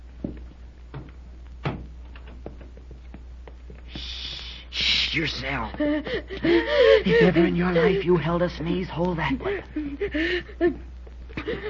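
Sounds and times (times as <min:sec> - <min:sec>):
door closing: 0:01.0 - 0:02.4
speech: 0:05.2 - 0:11.6.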